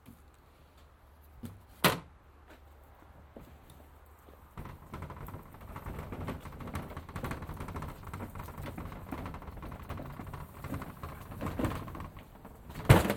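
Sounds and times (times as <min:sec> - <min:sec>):
bucket being taken out: 0:04.6 - 0:13.1.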